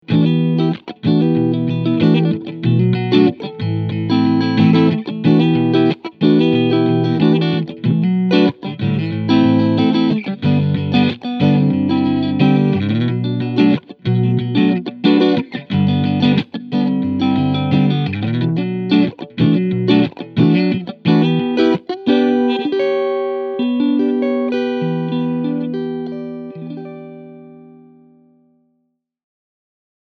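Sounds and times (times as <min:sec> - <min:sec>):
S7 Vintage 3TS clean sound on neck and middle pickup: 0:00.0 - 0:28.6.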